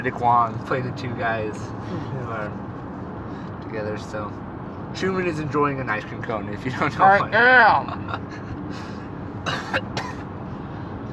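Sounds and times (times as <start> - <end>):
speech: 0.0 - 2.7, 3.7 - 8.9, 9.5 - 10.0
person coughing: 9.4 - 10.3.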